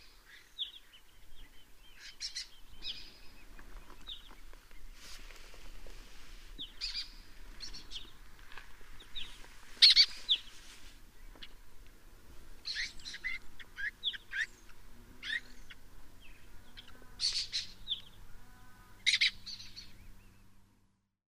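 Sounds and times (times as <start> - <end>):
lesser kestrel calling: 0.0 - 4.4, 6.6 - 8.2, 9.0 - 10.6, 12.6 - 18.2, 19.0 - 20.1.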